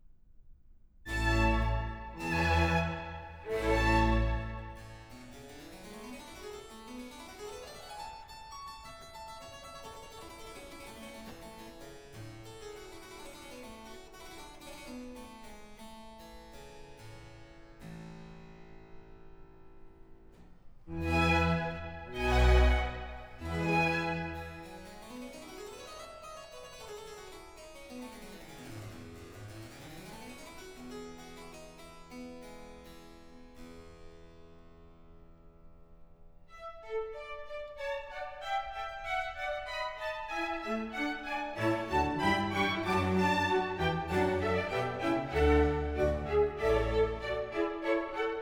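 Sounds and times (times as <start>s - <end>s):
trumpet, strings and continuo slow movement: 1.1s - 5.1s, 20.9s - 24.8s, 36.6s - 48.4s.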